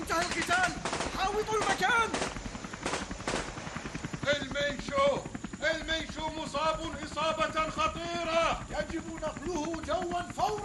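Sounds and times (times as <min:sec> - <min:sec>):
gunfire: 0:00.0 - 0:03.6
speech: 0:04.3 - 0:10.6.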